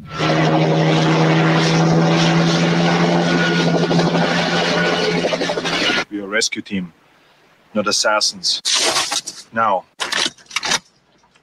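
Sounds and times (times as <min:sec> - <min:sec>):
propeller aircraft engine droning in the Predator movie trailer: 0:00.0 - 0:06.1
speech: 0:07.8 - 0:10.0.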